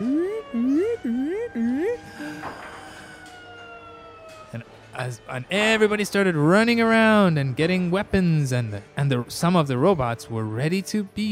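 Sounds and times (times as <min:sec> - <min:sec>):
voice imitating a loud alarm: 0:00.0 - 0:02.6
speech: 0:05.0 - 0:11.2.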